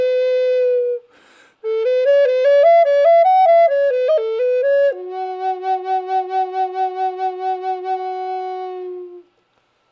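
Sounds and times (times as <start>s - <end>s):
dry flute note in F sharp: 0.0s - 9.4s.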